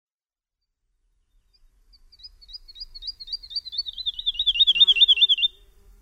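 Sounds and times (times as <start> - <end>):
woodlark song: 1.6 - 5.8.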